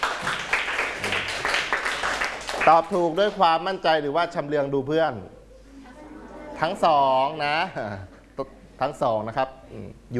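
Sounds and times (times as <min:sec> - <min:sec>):
people clapping for themselves: 0:00.0 - 0:03.4
speech: 0:02.7 - 0:05.4, 0:06.6 - 0:10.1.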